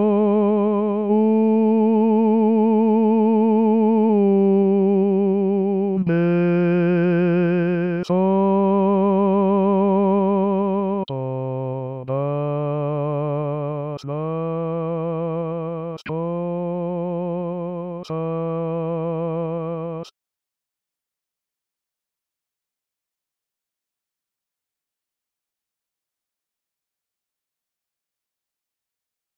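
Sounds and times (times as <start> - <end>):
bass: 0.0 - 20.0.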